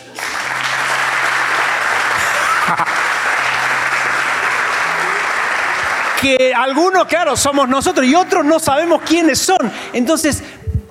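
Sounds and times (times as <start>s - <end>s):
audience applause: 0.0s - 9.8s
laughter: 0.4s - 6.2s
speech: 6.2s - 10.6s.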